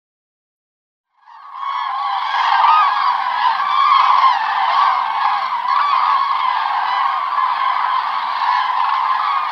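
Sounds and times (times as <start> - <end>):
common crane trumpeting calls: 1.2 - 9.4.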